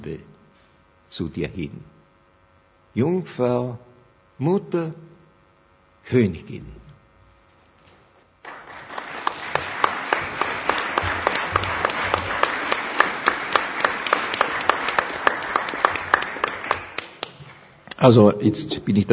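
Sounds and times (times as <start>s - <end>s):
speech: 0.0s - 0.4s, 1.1s - 2.0s, 2.9s - 5.1s, 6.0s - 6.8s, 18.0s - 19.1s
audience applause: 8.4s - 17.8s.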